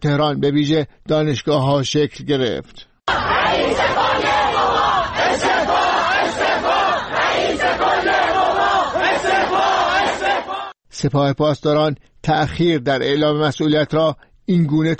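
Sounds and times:
speech: 0.0s - 4.4s, 11.0s - 14.9s
protest crowd chanting: 3.1s - 10.8s.

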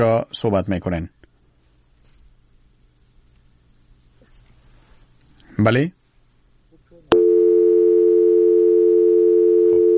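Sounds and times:
speech: 0.0s - 1.2s, 5.6s - 6.0s
telephone line tone after a caller's call drops: 7.1s - 9.9s.

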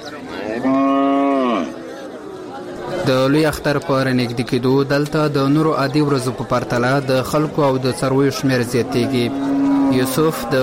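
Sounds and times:
cow mooing at a livestock market in Khost: 0.5s - 1.8s, 8.8s - 10.6s
speech: 3.1s - 10.6s.

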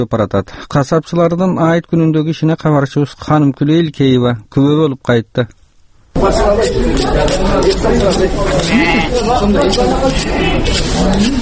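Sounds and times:
speech: 0.0s - 5.6s, 6.2s - 11.3s
crowd babble at the Talchok livestock market: 6.2s - 11.3s
sheep bleating at the old Talchok livestock market in Bishkek on Eid: 8.6s - 9.2s, 10.0s - 10.7s.

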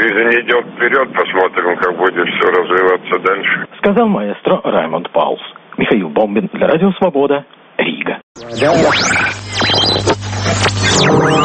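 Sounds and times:
dense crackling shortwave-style static in a radio art piece: 0.0s - 4.0s, 8.4s - 11.4s
speech: 0.2s - 11.4s.

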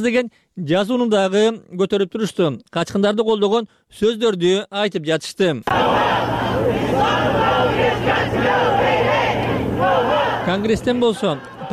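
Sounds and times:
speech: 0.0s - 8.9s, 9.9s - 11.7s
protesters chanting and yelling outside the White House in Washington: 5.7s - 11.7s.

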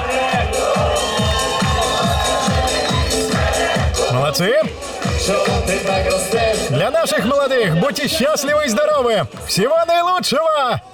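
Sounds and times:
music with a steady thumping beat: 0.0s - 7.3s, 8.4s - 9.6s
crowd of wedding guests clapping and cheering: 0.0s - 10.9s
speech: 4.3s - 6.2s, 6.9s - 10.9s.

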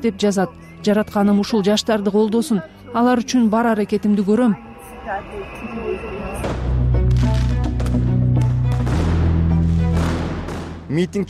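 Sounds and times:
speech: 0.0s - 6.6s, 10.9s - 11.2s
fireworks fired by protesters toward police: 6.3s - 10.9s.

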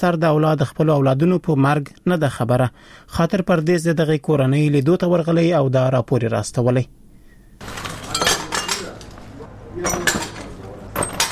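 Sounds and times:
speech: 0.0s - 7.0s
broken window glass gathered up in a rocket-wrecked house in Khair Khana: 7.8s - 9.0s.

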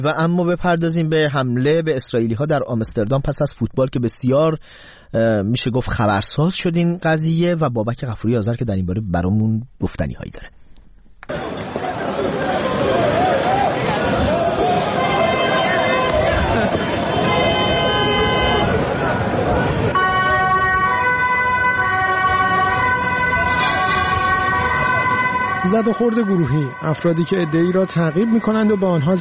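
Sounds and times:
speech: 0.0s - 10.6s, 25.6s - 29.1s
emergency sirens: 11.3s - 29.1s.

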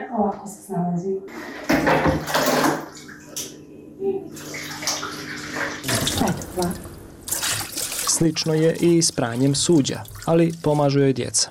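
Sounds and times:
low mechanical hum: 0.0s - 11.5s
speech: 0.1s - 6.9s, 8.2s - 11.5s
water poured from canister into washing machine: 1.7s - 3.4s, 4.3s - 11.5s.

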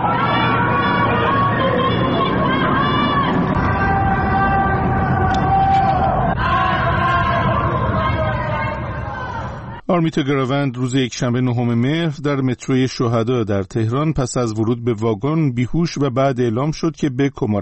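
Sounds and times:
people chanting anti-government slogans from their homes: 0.0s - 9.8s
speech: 10.0s - 17.6s.

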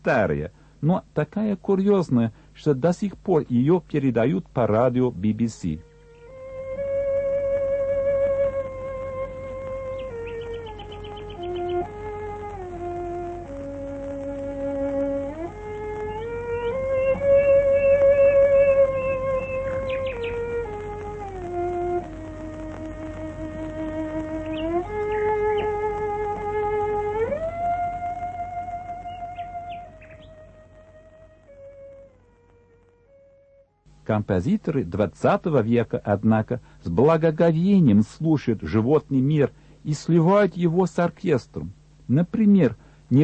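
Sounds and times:
speech: 0.0s - 5.9s, 34.3s - 43.2s
instrument playing folk songs: 3.0s - 34.1s
nightingale singing: 4.5s - 31.6s.

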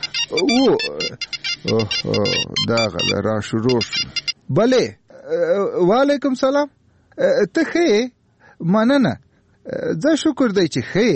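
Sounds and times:
mobile phone ringing with a short electronic ringtone: 0.0s - 4.4s
speech: 0.3s - 11.1s.

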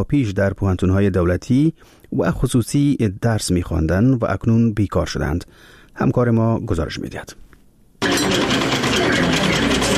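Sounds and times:
speech: 0.0s - 7.5s
sewing machines running in a tailoring training workshop: 8.0s - 9.9s.

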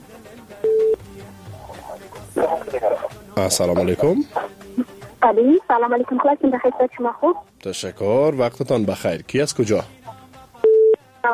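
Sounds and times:
voices: 0.0s - 10.6s
low noise: 0.0s - 11.3s
speech: 2.7s - 4.4s, 5.2s - 10.0s
telephone line tone as a new call is connected: 10.6s - 11.3s.

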